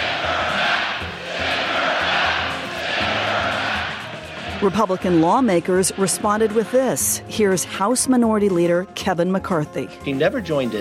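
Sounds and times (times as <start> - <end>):
rally crowd chanting in response: 0.0 - 7.3
speech: 4.6 - 10.7.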